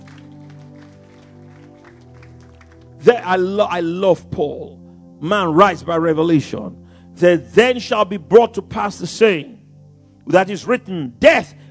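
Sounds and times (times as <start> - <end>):
audience clapping: 0.0 - 3.2
speech: 3.0 - 9.6, 10.3 - 11.6.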